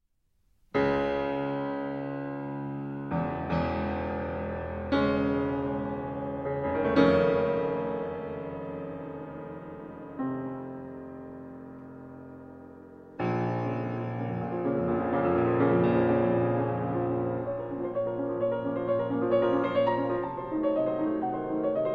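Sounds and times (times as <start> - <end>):
piano sonata: 0.5 - 21.9.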